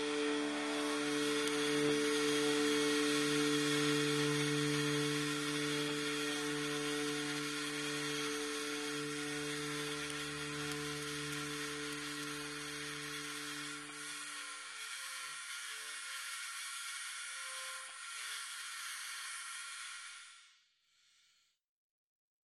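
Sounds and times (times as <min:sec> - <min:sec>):
guitar: 0:00.0 - 0:14.3.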